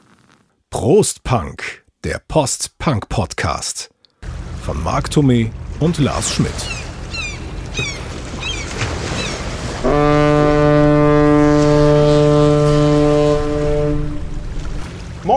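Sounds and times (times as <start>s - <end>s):
speech: 0.8s - 4.0s, 4.7s - 6.8s, 7.8s - 8.0s
gull-like cries: 4.2s - 14.2s
cargo ship horn arriving in harbor: 4.2s - 15.2s
low rumble of harbor water and wind: 4.2s - 15.3s.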